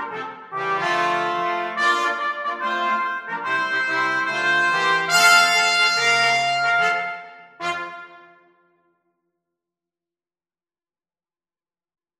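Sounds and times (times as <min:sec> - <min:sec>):
brass instruments: 0:00.0 - 0:08.8.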